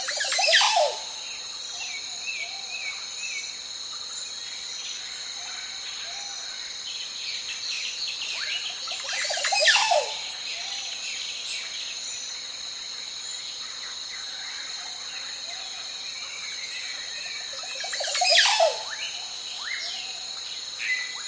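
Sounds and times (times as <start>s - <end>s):
varied clear ringing birdsong on a lake: 0.0s - 2.8s, 7.8s - 11.7s, 16.8s - 20.2s
calm cricket chirping: 0.0s - 21.2s.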